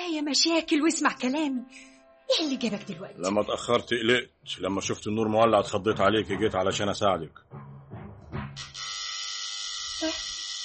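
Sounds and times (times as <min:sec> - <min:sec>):
speech: 0:00.2 - 0:07.7
doorbell buzzing: 0:08.6 - 0:10.6.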